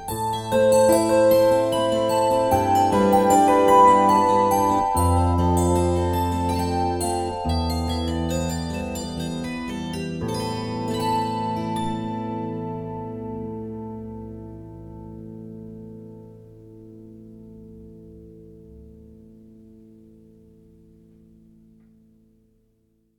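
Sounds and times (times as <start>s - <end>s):
kantele playing a waltz: 0.0s - 15.2s.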